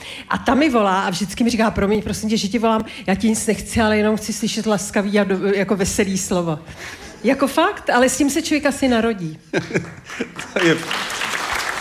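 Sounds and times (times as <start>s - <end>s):
speech: 0.3s - 11.2s
laughter: 9.4s - 11.3s
audience applause: 9.8s - 11.7s.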